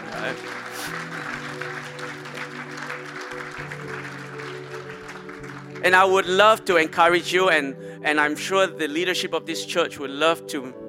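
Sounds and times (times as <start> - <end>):
audience clapping: 0.0 - 6.7
speech: 0.2 - 1.3, 5.8 - 10.8.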